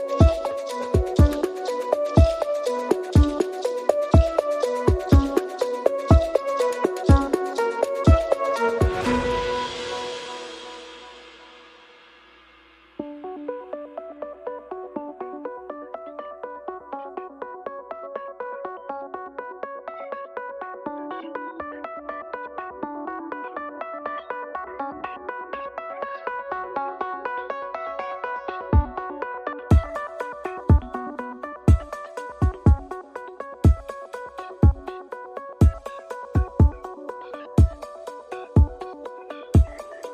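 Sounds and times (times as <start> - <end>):
drums: 0.2 - 12.8, 29.7 - 31.0, 31.6 - 33.0, 35.6 - 36.9, 37.6 - 38.0, 39.6 - 40.1.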